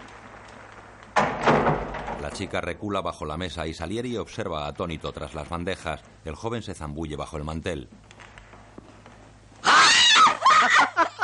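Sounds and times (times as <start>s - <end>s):
door closing: 1.2s - 2.6s
speech: 2.4s - 8.2s
laughter: 10.2s - 11.2s.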